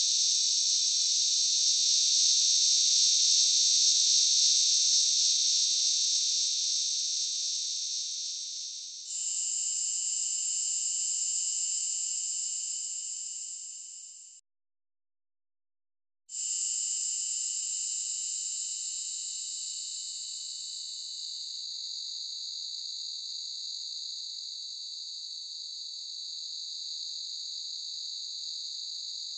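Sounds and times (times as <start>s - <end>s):
cicada buzzing: 0.0s - 8.6s.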